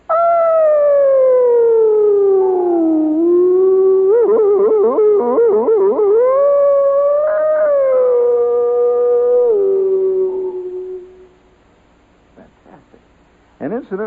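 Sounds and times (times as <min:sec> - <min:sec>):
lone voice hollering a sliding yodel with echo: 0:00.1 - 0:11.3.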